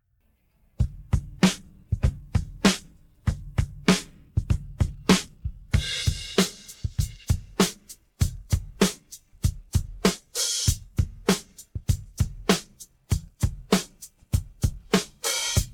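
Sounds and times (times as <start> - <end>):
drum pattern: 0.8 - 15.7.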